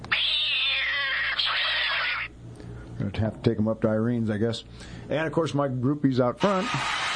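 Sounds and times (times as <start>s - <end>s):
studio cat meowing: 0.0s - 2.3s
speech: 3.1s - 7.0s.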